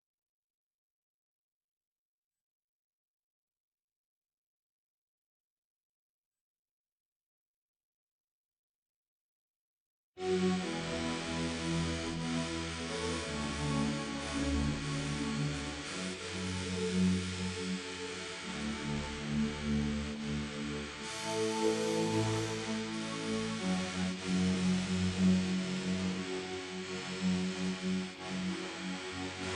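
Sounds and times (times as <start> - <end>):
synth: 10.2 - 29.5.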